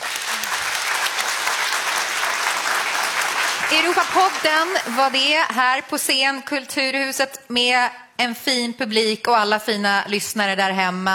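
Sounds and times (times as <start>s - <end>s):
audience applause: 0.0s - 5.4s
speech: 3.7s - 11.1s.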